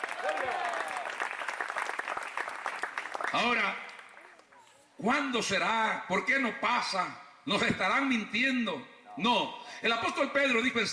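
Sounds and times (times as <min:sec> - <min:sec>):
audience applause: 0:00.0 - 0:04.4
speech: 0:03.3 - 0:03.8, 0:05.0 - 0:10.9.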